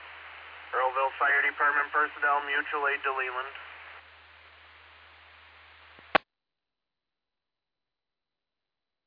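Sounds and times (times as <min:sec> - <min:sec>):
fire: 0:00.0 - 0:06.2.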